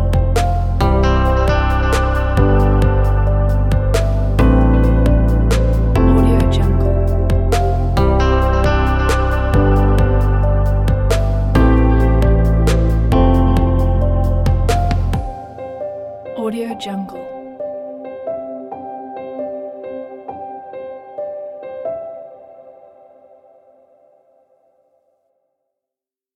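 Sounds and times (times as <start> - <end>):
motivational guitar and piano music: 0.0 - 23.1.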